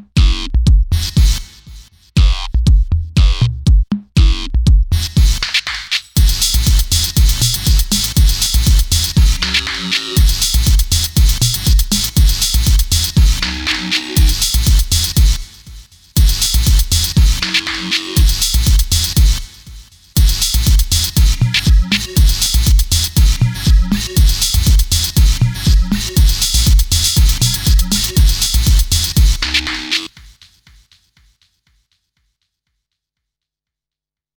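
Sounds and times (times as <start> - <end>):
electro house music: 0.2 - 30.9.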